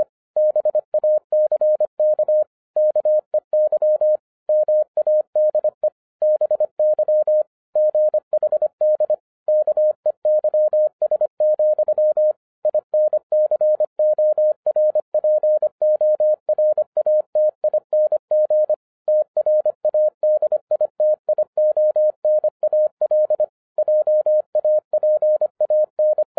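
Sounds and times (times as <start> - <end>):
Morse code beeps at 25 words per minute: 0.0 - 26.3.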